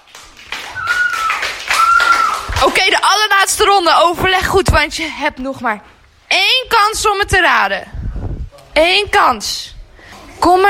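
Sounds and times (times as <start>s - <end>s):
applause: 0.0s - 2.9s
speech: 2.8s - 8.0s, 8.8s - 9.8s, 10.4s - 10.6s.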